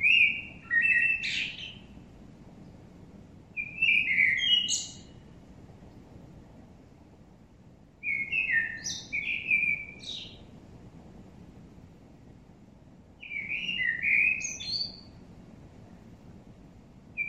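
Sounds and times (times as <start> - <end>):
common blackbird Turdus merula song: 0.0 - 2.0, 3.6 - 5.2, 8.0 - 10.5, 13.2 - 15.2.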